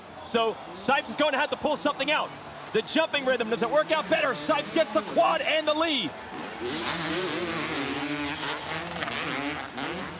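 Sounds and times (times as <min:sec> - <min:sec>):
speech: 0:00.3 - 0:07.5
two-stroke racing motorcycle engines revving during a dirt-bike race: 0:02.4 - 0:10.1.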